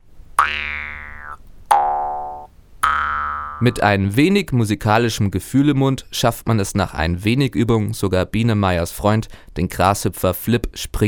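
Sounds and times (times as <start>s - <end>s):
jaw harp twangs: 0.4s - 3.8s
speech: 3.6s - 11.0s.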